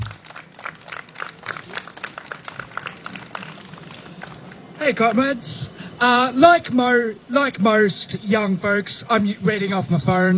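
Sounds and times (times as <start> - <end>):
audience applause: 0.0 - 4.7
speech: 4.9 - 10.3.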